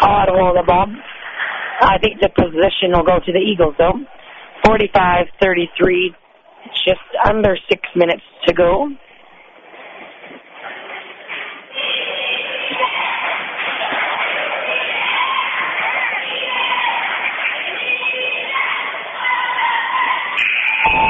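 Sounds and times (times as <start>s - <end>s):
speech: 0.6s - 1.2s, 1.8s - 9.0s
basketball crowd cheering: 10.6s - 21.0s.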